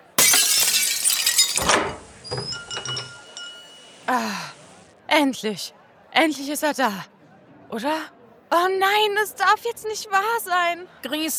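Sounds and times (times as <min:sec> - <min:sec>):
dropped glass item shattering on the floor: 0:00.0 - 0:04.1
small glass shards tinkling: 0:00.0 - 0:04.3
speech: 0:04.1 - 0:04.5, 0:05.2 - 0:11.3.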